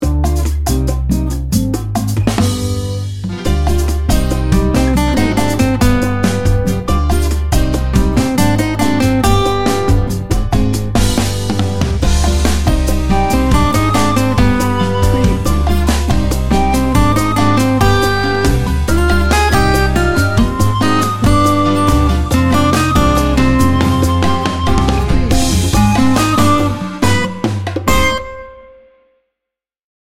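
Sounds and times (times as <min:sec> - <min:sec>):
cuban music: 0:00.0 - 0:29.0.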